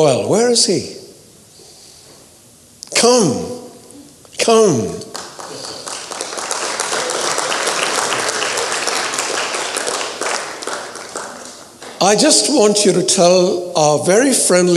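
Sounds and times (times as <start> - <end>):
speech: 0.0 - 1.0, 3.0 - 3.5, 4.5 - 5.0, 12.0 - 14.7
crowd applause: 5.1 - 12.6.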